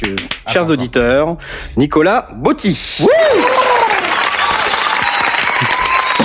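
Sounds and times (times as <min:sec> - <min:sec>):
speech: 0:00.0 - 0:03.7
audience applause: 0:03.1 - 0:06.2.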